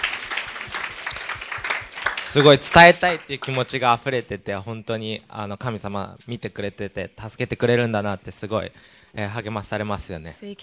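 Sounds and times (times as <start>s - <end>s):
crowd applause: 0.0s - 3.6s
speech: 2.3s - 10.6s.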